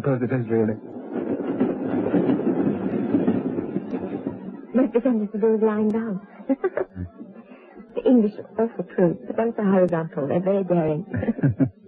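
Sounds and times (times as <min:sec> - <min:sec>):
speech: 0:00.0 - 0:00.9, 0:01.6 - 0:02.4, 0:05.0 - 0:06.7, 0:08.1 - 0:11.7
underground train rumbling past in a tube station: 0:00.0 - 0:07.4
laughter: 0:06.3 - 0:07.4, 0:11.0 - 0:11.8.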